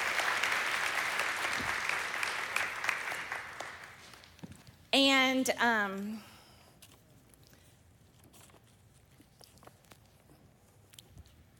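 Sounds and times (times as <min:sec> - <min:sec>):
audience applause for a woman called up to the stage: 0:00.0 - 0:04.4
speech: 0:04.9 - 0:06.3.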